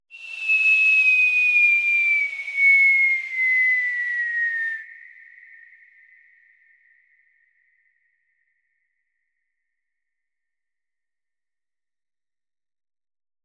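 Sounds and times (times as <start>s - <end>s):
falling bomb whistle without explosion: 0.1s - 6.4s.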